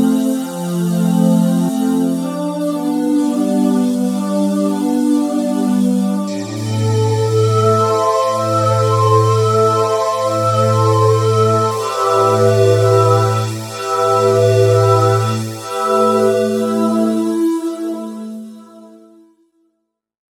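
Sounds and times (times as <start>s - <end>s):
Yamaha EX5R synthesizer raw choir: 0.0s - 19.2s
Yamaha EX5R synthesizer FDSP PWM tones: 6.2s - 18.5s.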